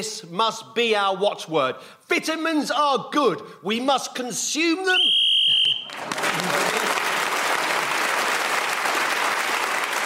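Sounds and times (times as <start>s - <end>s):
speech: 0.0s - 7.0s
whistle blown to end the round: 4.9s - 6.0s
crowd applause: 5.6s - 10.0s.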